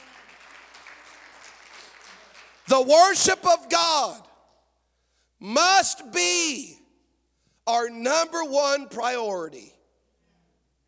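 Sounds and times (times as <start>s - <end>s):
crowd clapping: 0.0s - 3.2s
speech: 2.7s - 4.3s, 5.4s - 6.8s, 7.7s - 9.8s.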